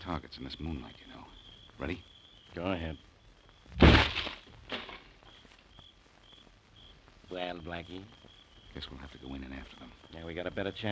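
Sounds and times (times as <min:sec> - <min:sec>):
speech: 0:00.1 - 0:03.1, 0:07.3 - 0:10.9
door being kicked open: 0:03.8 - 0:05.1.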